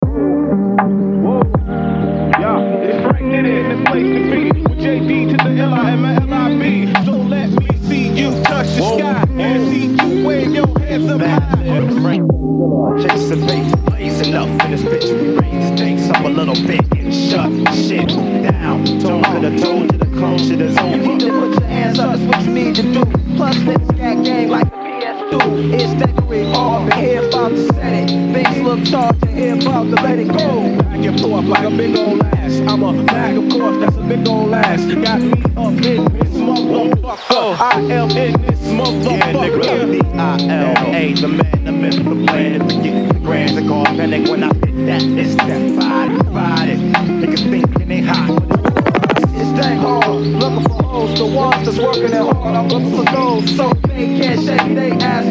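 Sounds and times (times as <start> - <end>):
guitar: 0.0 - 55.2.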